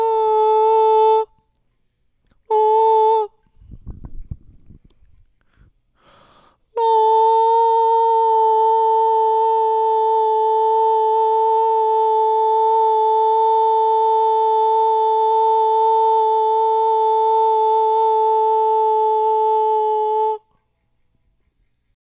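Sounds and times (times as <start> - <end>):
male ambient lead vocal: 0.0 - 1.3, 6.8 - 20.5.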